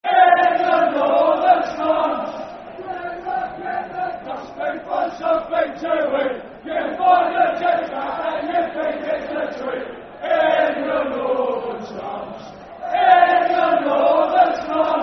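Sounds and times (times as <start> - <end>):
football chant: 0.0 - 15.0.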